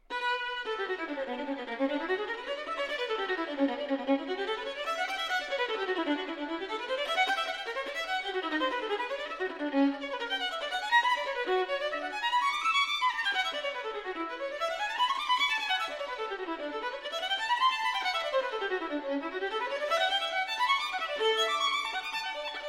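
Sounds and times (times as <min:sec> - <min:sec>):
violin: 0:00.0 - 0:22.6.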